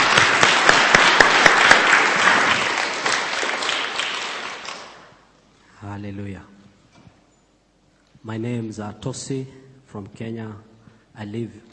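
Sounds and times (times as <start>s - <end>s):
audience applause: 0.0s - 5.2s
speech: 6.0s - 6.6s, 8.2s - 11.7s.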